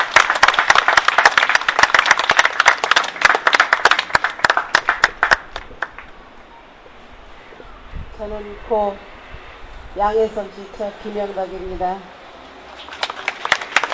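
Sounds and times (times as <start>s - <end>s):
audience applause: 0.0s - 6.1s, 12.7s - 13.9s
speech: 8.2s - 9.1s, 10.0s - 12.2s.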